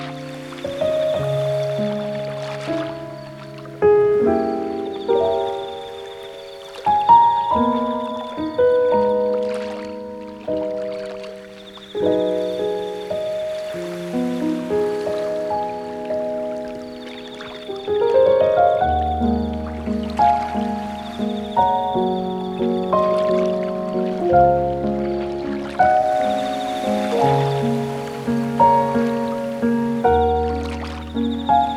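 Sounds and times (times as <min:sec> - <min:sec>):
rain: 0:00.0 - 0:05.6, 0:12.1 - 0:31.7
ocean: 0:00.0 - 0:31.7.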